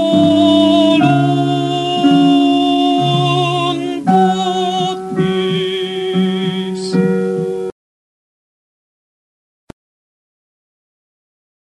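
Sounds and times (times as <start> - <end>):
tenors singing: 0.0 - 7.5.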